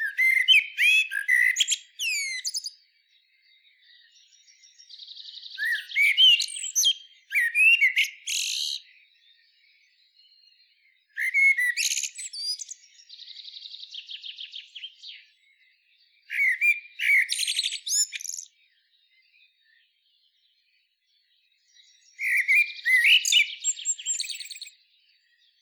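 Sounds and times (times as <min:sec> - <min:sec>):
common blackbird singing: 0:00.0 - 0:25.6.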